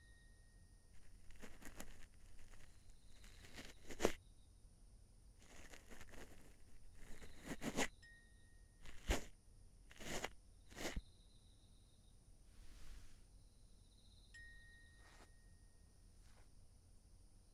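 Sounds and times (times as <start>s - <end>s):
ASMR ear cleaning of the right ear: 1.0s - 4.2s, 5.4s - 7.9s, 8.8s - 9.3s, 9.9s - 11.0s.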